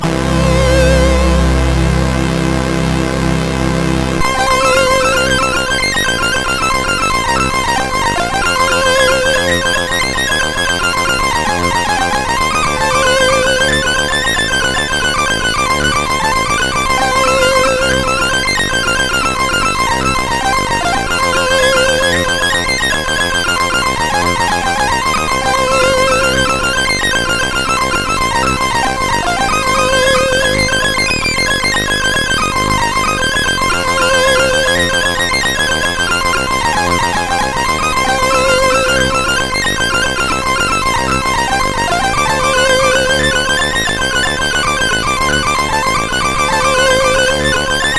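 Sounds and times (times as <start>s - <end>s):
loader tune on CSG8580R5: 0.0s - 47.9s.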